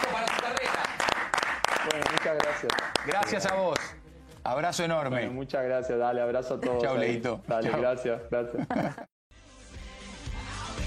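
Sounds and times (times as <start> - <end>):
applause: 0.0 - 4.0
speech: 1.9 - 9.1
laughter: 7.5 - 9.1.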